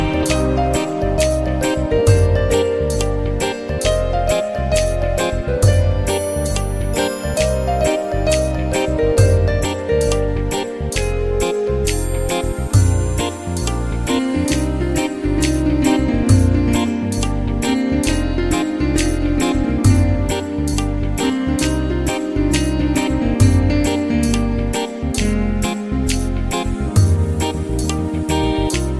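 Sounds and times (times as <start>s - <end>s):
love tune: 0.0s - 28.9s.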